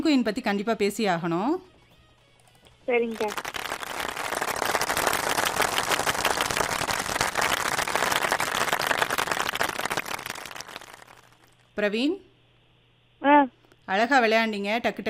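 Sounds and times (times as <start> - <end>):
speech: 0.0 - 1.7, 2.9 - 3.6, 11.8 - 12.3, 13.2 - 15.0
audience applause: 3.2 - 11.6.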